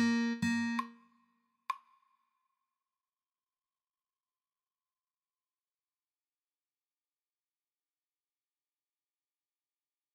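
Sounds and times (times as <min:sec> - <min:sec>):
slow guitar piece: 0:00.0 - 0:01.0.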